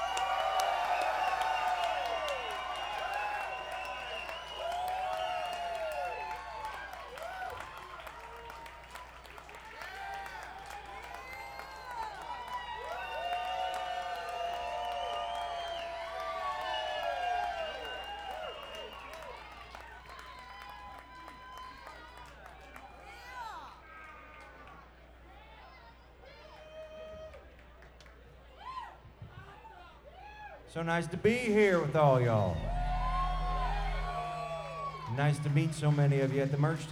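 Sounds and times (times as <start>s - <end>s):
crowd whooping and shouting: 0.0s - 7.8s, 9.8s - 19.0s, 31.6s - 36.8s
audience applause welcoming a band at a show: 0.0s - 23.5s, 30.9s - 36.8s
speech: 30.7s - 32.7s, 35.2s - 36.8s.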